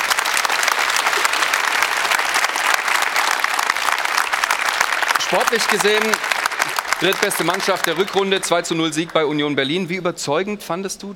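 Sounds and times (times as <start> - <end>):
audience applause: 0.0 - 9.6
speech: 5.3 - 6.4, 7.0 - 11.1.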